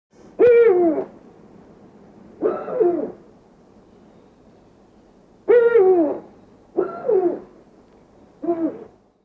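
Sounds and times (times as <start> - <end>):
owl hooting: 0.4 - 1.2, 2.4 - 3.2, 5.4 - 7.6, 8.4 - 8.9.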